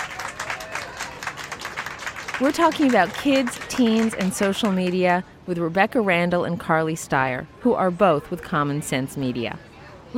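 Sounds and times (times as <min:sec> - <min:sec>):
audience applause: 0:00.0 - 0:05.0
speech: 0:02.4 - 0:10.1.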